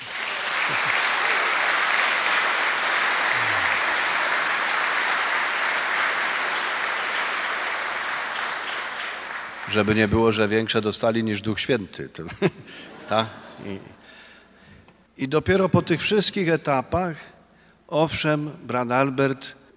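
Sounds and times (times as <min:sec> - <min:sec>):
audience applause for the musicians: 0:00.0 - 0:10.4
laughter: 0:00.5 - 0:01.7, 0:03.1 - 0:04.2, 0:12.3 - 0:14.0
speech: 0:09.7 - 0:14.1, 0:15.2 - 0:19.6.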